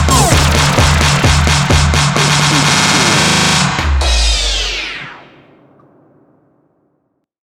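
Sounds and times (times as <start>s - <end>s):
electronic dance music: 0.2s - 4.6s.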